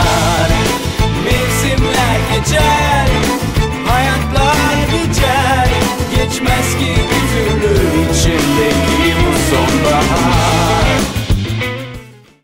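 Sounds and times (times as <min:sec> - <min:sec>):
vocals: 0:00.0 - 0:11.4.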